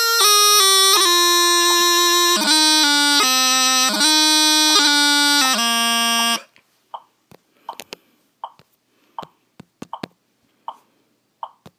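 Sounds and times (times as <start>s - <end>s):
pipers playing at Balmoral: 0.0s - 6.5s.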